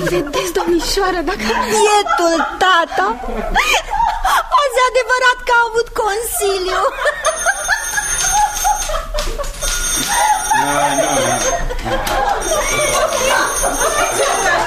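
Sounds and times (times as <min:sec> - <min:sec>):
laughter: 0:00.0 - 0:04.8, 0:06.6 - 0:14.6
speech: 0:00.1 - 0:07.3, 0:10.6 - 0:14.6
telephone ringing: 0:07.0 - 0:14.6.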